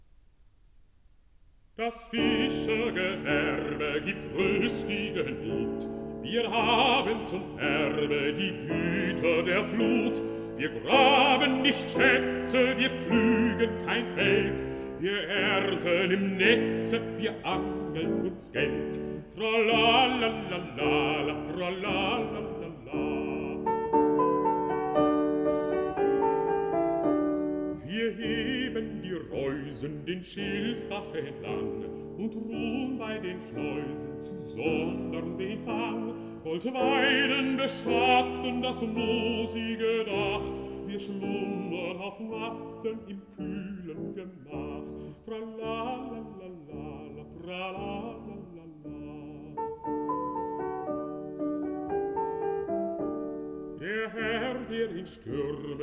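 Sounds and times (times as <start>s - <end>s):
piano: 0.0s - 55.8s
person singing: 1.8s - 24.4s, 27.7s - 51.0s, 53.8s - 55.8s.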